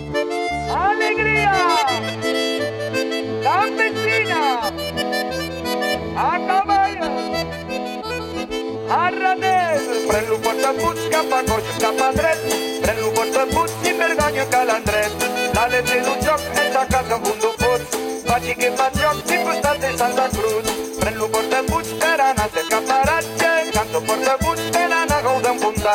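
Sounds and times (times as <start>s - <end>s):
person singing: 0.2s - 4.9s, 5.7s - 25.9s.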